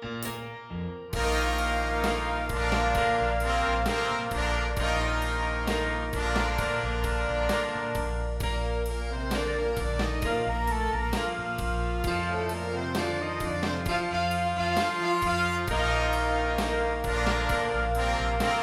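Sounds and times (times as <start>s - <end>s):
horns in fifths: 0.3s - 18.6s.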